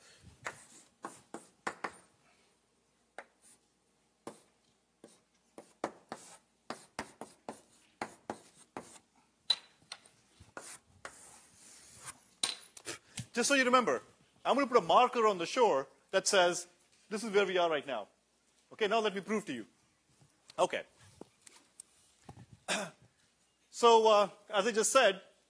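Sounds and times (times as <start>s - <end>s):
writing on a board during a lecture: 0.4s - 2.1s, 4.2s - 9.1s, 10.4s - 12.2s
speech: 13.4s - 18.2s, 18.8s - 19.7s, 20.6s - 20.9s, 23.8s - 25.3s.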